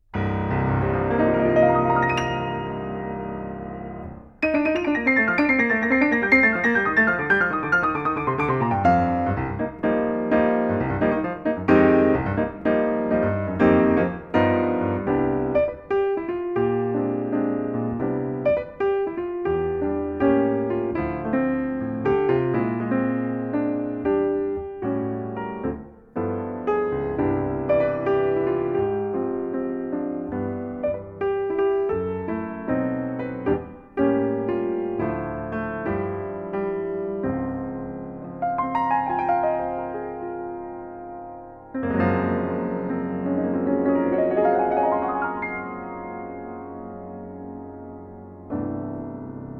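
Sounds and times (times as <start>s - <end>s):
piano: 0.0s - 49.5s.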